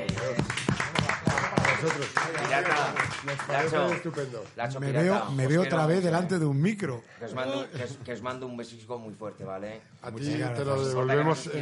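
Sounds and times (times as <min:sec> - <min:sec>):
applause: 0:00.0 - 0:04.6
speech: 0:01.8 - 0:11.6.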